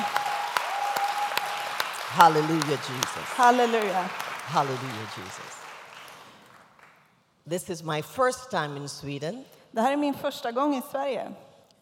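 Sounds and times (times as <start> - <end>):
crowd applauding: 0.0 - 7.1
sharp rhythmic claps: 0.0 - 7.2
speech: 2.1 - 5.6, 7.4 - 11.5.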